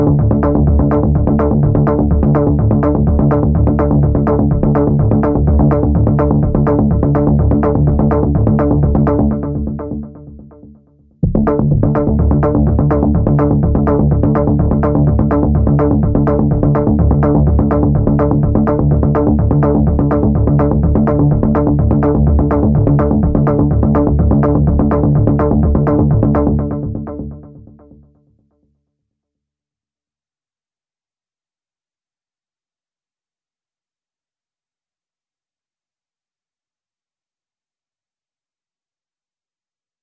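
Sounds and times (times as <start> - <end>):
synth bass: 0.0 - 28.0.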